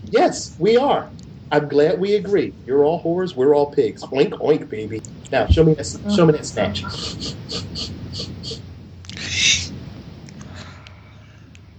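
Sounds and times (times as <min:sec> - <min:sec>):
low rumble: 0:00.0 - 0:11.7
speech: 0:00.2 - 0:08.0
laughter: 0:05.4 - 0:08.6
person sniffing loudly: 0:06.1 - 0:09.8.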